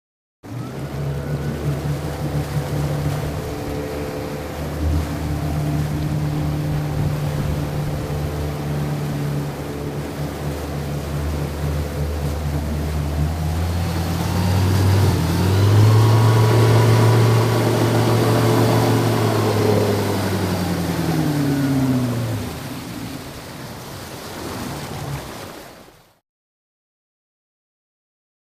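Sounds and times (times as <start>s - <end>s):
350 Chevy engine: 0.4s - 25.6s.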